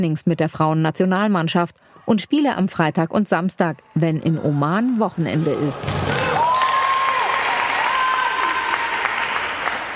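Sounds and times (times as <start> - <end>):
speech: 0.0 - 6.3
spectators clapping and cheering at women's football match: 4.5 - 9.9
shouts: 6.0 - 9.4.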